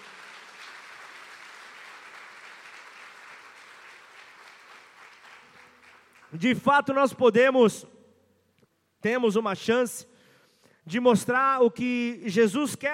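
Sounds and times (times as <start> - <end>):
crowd applauding: 0.0 - 6.7
speech: 6.3 - 8.0, 9.0 - 10.1, 10.9 - 12.9.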